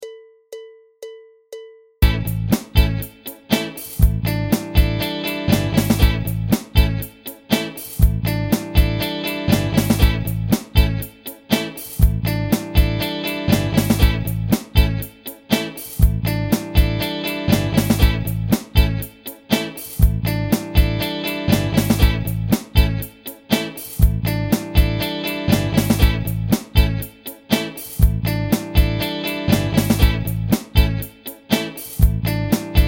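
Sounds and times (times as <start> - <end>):
groove music: 2.0 - 32.8.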